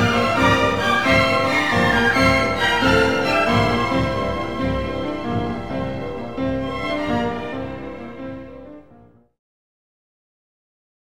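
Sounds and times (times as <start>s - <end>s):
danzon music: 0.0s - 8.8s.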